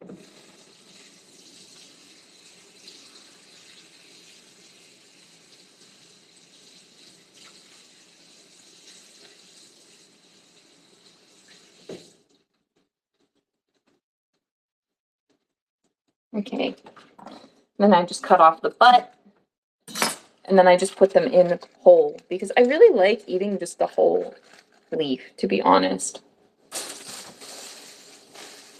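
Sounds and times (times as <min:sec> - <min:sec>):
tap water running as bok choy is rinsed: 0:00.0 - 0:12.5, 0:26.7 - 0:28.7
speech: 0:16.4 - 0:19.1, 0:20.5 - 0:26.3.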